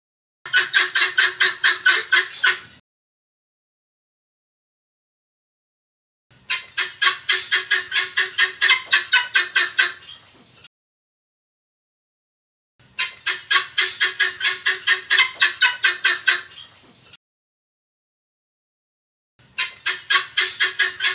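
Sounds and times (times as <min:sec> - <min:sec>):
helmeted guineafowl rasping calls: 0:00.5 - 0:02.8, 0:06.4 - 0:10.3, 0:13.0 - 0:16.8, 0:19.5 - 0:21.1.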